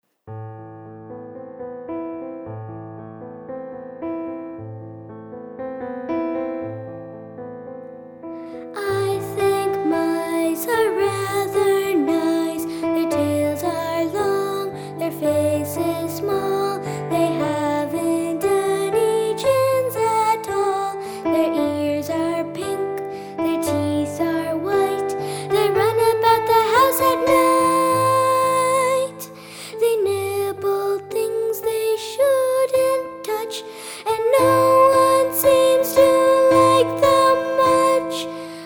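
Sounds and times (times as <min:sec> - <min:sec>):
vocals: 0:08.4 - 0:38.6.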